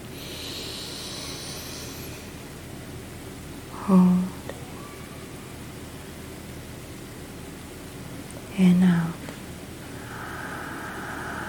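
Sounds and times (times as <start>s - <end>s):
deep belly breath in: 0.1s - 2.1s, 9.9s - 11.4s
speech: 3.9s - 4.2s.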